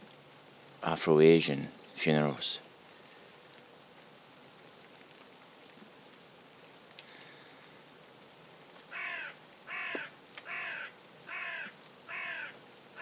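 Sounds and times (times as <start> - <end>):
speech: 0.8 - 2.6
raven cawing: 8.8 - 13.0.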